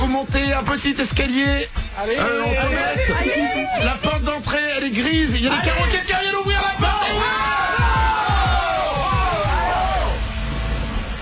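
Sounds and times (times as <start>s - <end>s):
deep rhythmic thumps: 0.0s - 11.2s
speech: 0.1s - 7.6s
rowdy crowd shouting and cheering: 1.9s - 10.5s.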